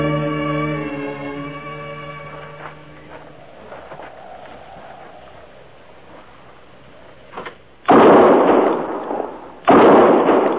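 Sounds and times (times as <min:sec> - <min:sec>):
gunshots while hunting an antlered animal: 0:07.9 - 0:10.5.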